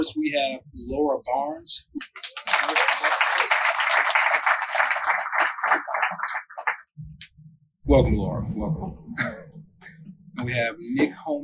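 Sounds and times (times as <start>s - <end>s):
speech: 0.0s - 2.3s, 7.9s - 9.4s, 10.4s - 11.4s
laughter: 2.0s - 6.7s
crowd applause: 2.0s - 6.9s.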